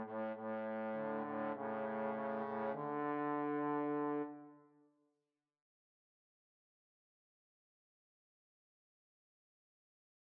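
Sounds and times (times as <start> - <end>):
trombone trio playing: 0.0 - 4.3.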